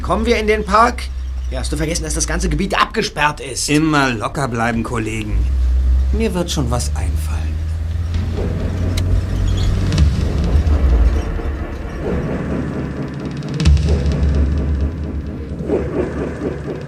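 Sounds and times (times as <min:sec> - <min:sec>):
MG sports car driving up and parking: 0:00.0 - 0:16.0
speech: 0:00.1 - 0:07.6.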